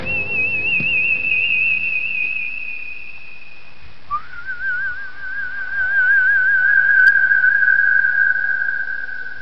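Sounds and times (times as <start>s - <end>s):
whistle: 0.0s - 9.4s.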